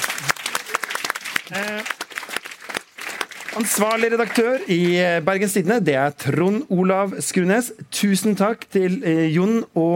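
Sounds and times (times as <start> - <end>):
audience applause: 0.0 - 5.3
speech: 1.5 - 2.0, 3.6 - 9.9.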